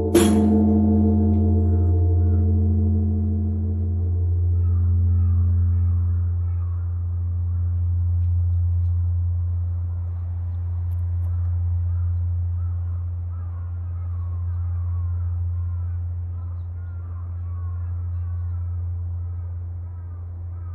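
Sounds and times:
heavy bell stroke at Zojo-ji Temple in Tokyo: 0.0 - 7.3
faint crow caws: 0.0 - 8.0, 11.2 - 20.7
deep steady urban rumble: 0.0 - 10.9.

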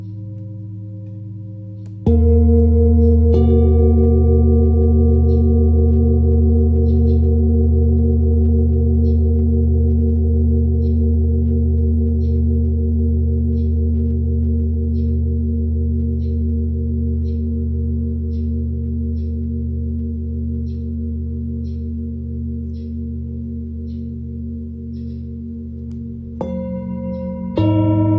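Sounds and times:
Tibetan singing bowl ringing: 0.0 - 28.1.

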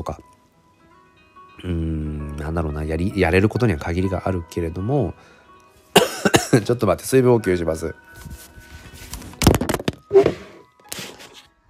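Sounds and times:
speech: 0.0 - 0.3, 1.6 - 5.4, 6.5 - 8.5
smartphone dropping: 9.4 - 10.5.

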